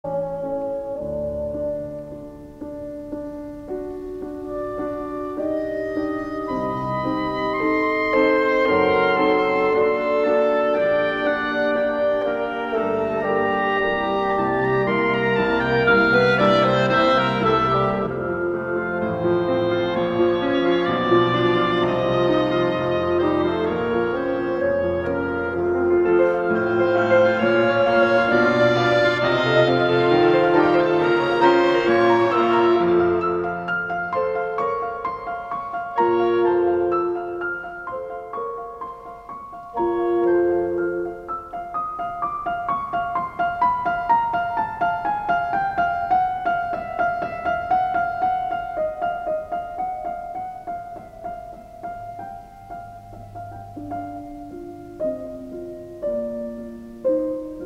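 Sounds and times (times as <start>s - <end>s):
chamber quintet for piano and winds: 0.0s - 57.6s.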